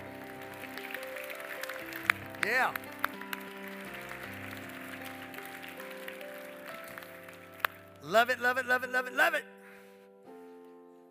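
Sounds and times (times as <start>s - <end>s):
audience clapping along: 0.0s - 8.8s
sustained keyboard chords: 0.0s - 11.0s
speech: 2.4s - 3.2s, 8.0s - 9.5s.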